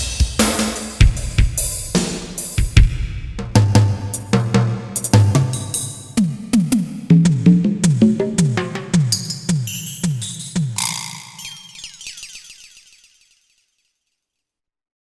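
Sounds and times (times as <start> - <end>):
drums: 0.0 - 11.4.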